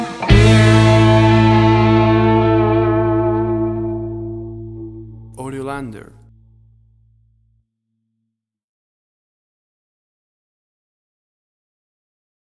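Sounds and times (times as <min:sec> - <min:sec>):
blues music in a bar: 0:00.0 - 0:06.8.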